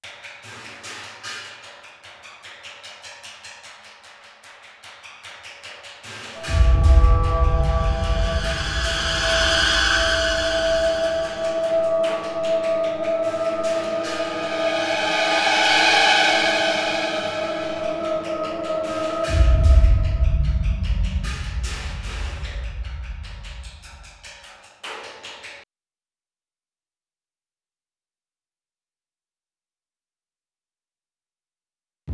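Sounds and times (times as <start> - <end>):
suspense music: 6.3 - 24.3.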